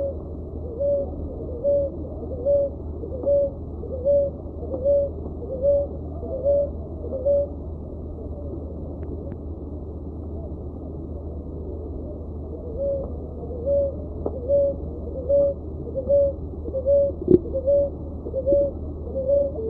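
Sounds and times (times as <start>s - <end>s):
dove uttering short mellow hoot-like notes: 0.0s - 8.7s, 11.7s - 19.6s.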